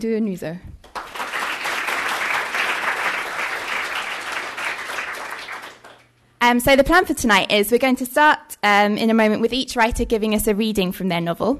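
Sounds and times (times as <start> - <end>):
speech: 0.0 - 0.7, 6.5 - 11.5
round of applause: 0.8 - 6.2.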